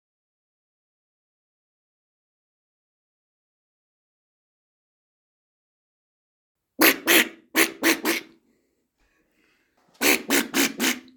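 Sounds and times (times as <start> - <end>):
peafowl giving harsh nasal honks: 6.8 - 8.2, 10.0 - 11.0.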